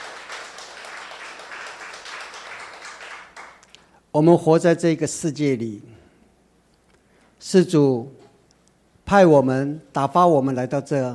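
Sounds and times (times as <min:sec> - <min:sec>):
audience applause: 0:00.0 - 0:03.7
speech: 0:04.2 - 0:06.0, 0:07.5 - 0:08.2, 0:09.1 - 0:11.1.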